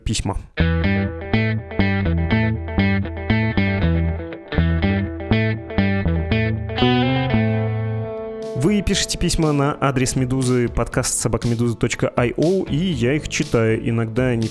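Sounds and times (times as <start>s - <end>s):
speech: 0.1s - 1.2s, 8.9s - 14.4s
two-chord jingle with distorted guitar-like strums: 0.6s - 11.0s.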